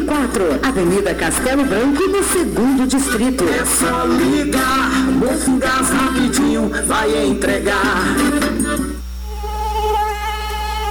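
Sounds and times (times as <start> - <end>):
speech: 0.1 - 8.9
dengue mosquito buzzing: 2.9 - 10.8.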